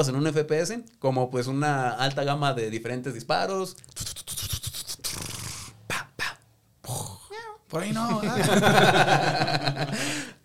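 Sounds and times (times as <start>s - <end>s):
speech: 0.0s - 4.4s, 7.7s - 10.2s
cat hissing and spitting: 3.8s - 5.8s
laughter: 7.9s - 10.2s.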